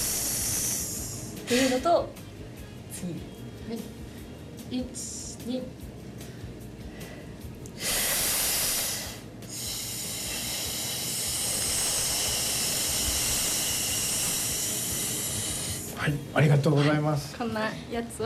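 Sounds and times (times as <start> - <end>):
slow thin exhale after a deep breath during a breathing exercise: 0.0 - 1.8, 6.3 - 16.0
speech: 1.5 - 2.2, 3.0 - 4.0, 4.7 - 5.9, 16.0 - 18.2.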